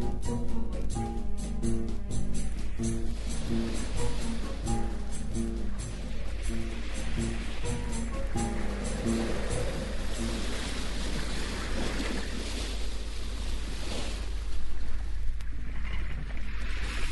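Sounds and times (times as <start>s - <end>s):
stormy sea waves tossing a ship: 0.0s - 17.1s.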